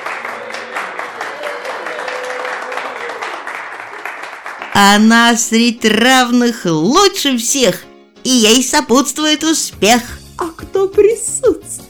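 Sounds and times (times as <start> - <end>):
audience applause: 0.0 - 5.1
speech: 4.8 - 11.6.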